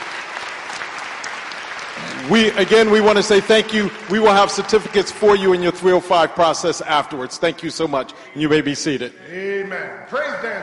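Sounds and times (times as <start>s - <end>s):
audience applause: 0.0s - 5.9s
speech: 2.2s - 10.6s.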